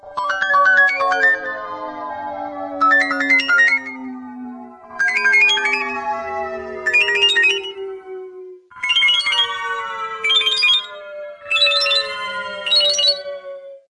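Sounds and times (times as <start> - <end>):
ringtone: 0.1 - 1.8, 2.8 - 4.1, 4.9 - 7.9, 8.7 - 13.5.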